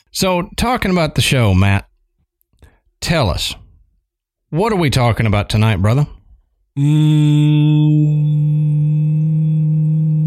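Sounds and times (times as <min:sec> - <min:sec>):
speech: 0:00.2 - 0:01.9, 0:03.0 - 0:03.6, 0:04.5 - 0:06.2, 0:06.8 - 0:09.4
person humming a steady low drone: 0:06.8 - 0:10.2.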